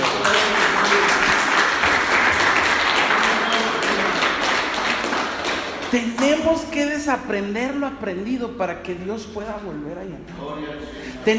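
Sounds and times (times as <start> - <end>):
audience applause: 0.0 - 6.1
speech: 5.9 - 11.3.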